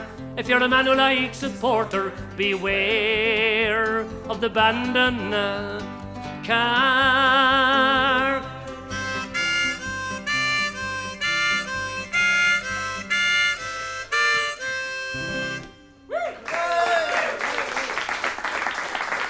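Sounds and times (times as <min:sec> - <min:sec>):
speech: 0:00.4 - 0:08.3
instruments playing a rhythmic tune at a live ballad performance: 0:08.9 - 0:16.1
audience applause: 0:16.3 - 0:19.2.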